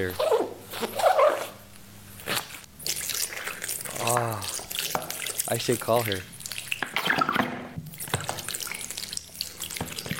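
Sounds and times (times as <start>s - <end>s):
speech: 0.0s - 0.2s, 5.5s - 6.3s
water leaking from a rug being cleaned: 2.8s - 10.1s.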